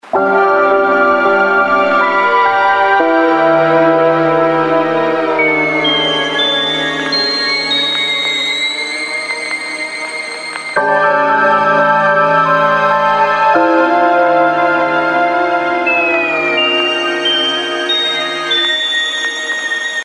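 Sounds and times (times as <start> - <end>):
interface ringtones: 0.0 - 20.0.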